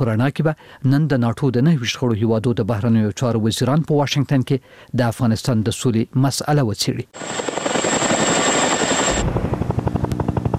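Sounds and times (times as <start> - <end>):
speech: 0.0 - 7.7
NATO helicopter rotor noise over Afghanistan: 7.2 - 10.5.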